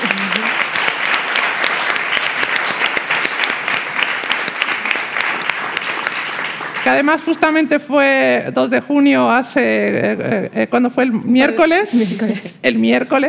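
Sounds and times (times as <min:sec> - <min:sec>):
loud audience applause: 0:00.0 - 0:07.7
speech: 0:06.9 - 0:13.2.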